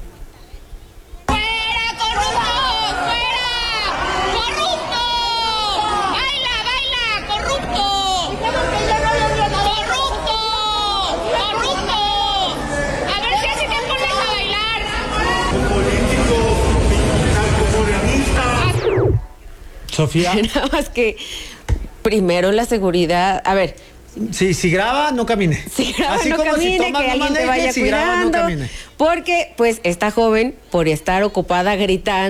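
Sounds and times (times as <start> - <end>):
crowd jeering and booing at airport: 1.3 - 19.2
speech: 20.0 - 32.2.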